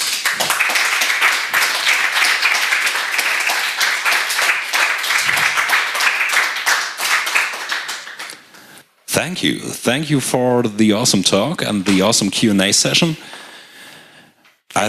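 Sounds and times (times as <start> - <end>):
audience applause: 0.0 - 8.3
speech: 9.2 - 13.4.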